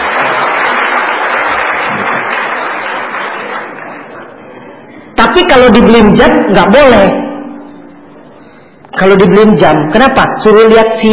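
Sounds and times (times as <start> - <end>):
hands clapping: 0.0 - 4.3
speech: 5.4 - 7.2, 9.0 - 11.1.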